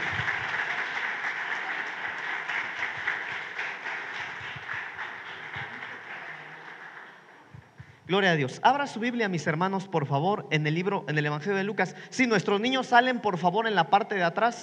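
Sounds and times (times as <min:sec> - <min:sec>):
audience applause: 0:00.0 - 0:07.8
speech: 0:08.1 - 0:14.6.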